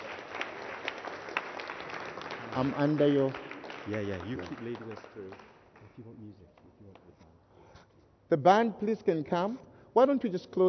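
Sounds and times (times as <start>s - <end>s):
audience clapping: 0.0s - 7.1s
speech: 2.6s - 7.2s, 8.3s - 10.6s.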